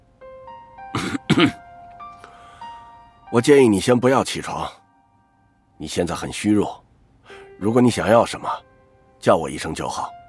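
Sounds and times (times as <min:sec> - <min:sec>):
cough: 0:01.0 - 0:01.6
speech: 0:01.4 - 0:01.6, 0:03.3 - 0:04.8, 0:05.8 - 0:10.2.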